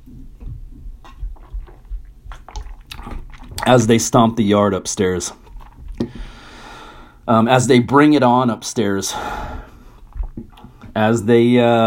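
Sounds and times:
person taking a drink: 1.0s - 3.9s, 5.4s - 6.6s, 9.5s - 10.9s
speech: 3.7s - 5.4s, 7.3s - 9.6s, 11.0s - 11.8s.

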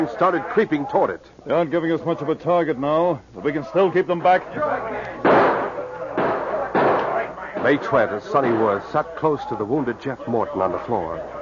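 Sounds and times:
speech: 0.0s - 5.4s, 7.6s - 11.4s
gunshots: 5.2s - 8.9s.

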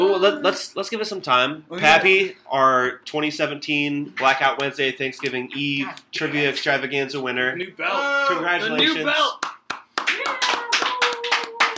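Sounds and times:
speech: 0.0s - 9.5s
sparse applause from a small handful of people: 9.0s - 11.7s.

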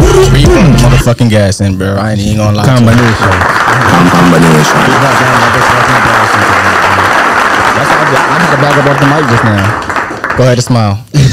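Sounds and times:
speech: 1.0s - 7.2s, 7.8s - 11.3s
applause: 2.6s - 10.9s.

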